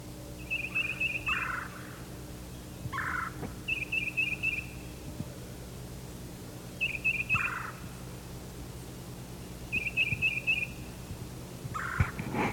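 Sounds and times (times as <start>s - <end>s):
trilled bird calls: 0.4s - 5.0s, 6.8s - 7.8s, 9.6s - 10.9s, 11.7s - 12.2s.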